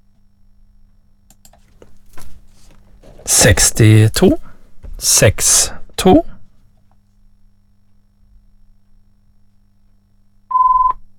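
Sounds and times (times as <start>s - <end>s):
speech: 3.3s - 6.3s
telephone ringing during a bingo game: 10.5s - 11.0s.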